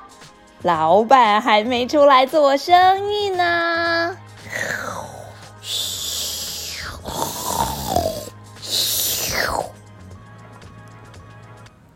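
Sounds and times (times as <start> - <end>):
speech: 0.6 - 4.2
person snoring: 4.4 - 9.8.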